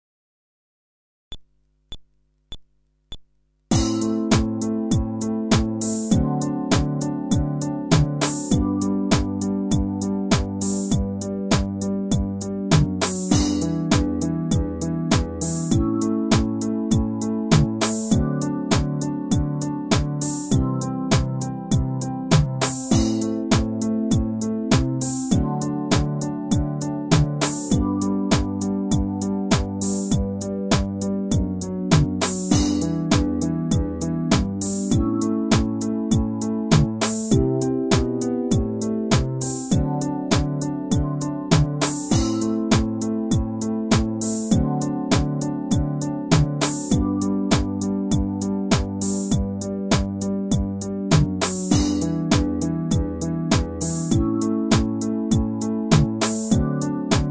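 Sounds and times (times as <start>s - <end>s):
fretless bass groove: 3.7s - 57.2s.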